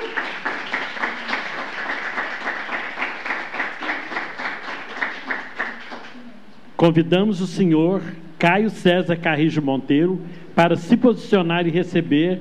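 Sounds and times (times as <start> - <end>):
warm round of applause from a crowd: 0.0 - 6.3
speech: 6.8 - 12.3.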